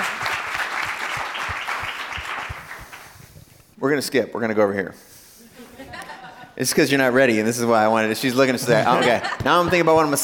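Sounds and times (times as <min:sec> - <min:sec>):
audience applause: 0:00.0 - 0:03.0
speech: 0:03.8 - 0:05.1, 0:06.6 - 0:10.2
laughter: 0:05.4 - 0:06.6, 0:08.3 - 0:10.2.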